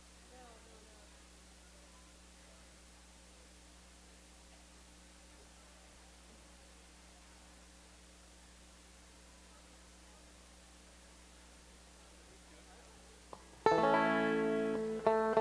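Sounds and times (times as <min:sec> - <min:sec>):
banjo tuning: 0:13.6 - 0:15.3.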